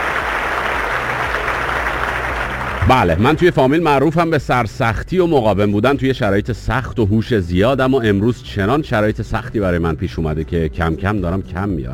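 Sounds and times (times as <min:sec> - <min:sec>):
canned applause for a caller on a radio call-in show: 0:00.0 - 0:04.0
speech: 0:02.9 - 0:11.9.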